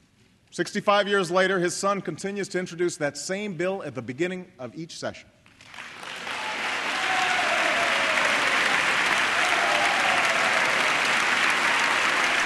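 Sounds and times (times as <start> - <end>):
speech: 0.6 - 5.4
applause in a legislative chamber: 5.5 - 12.4.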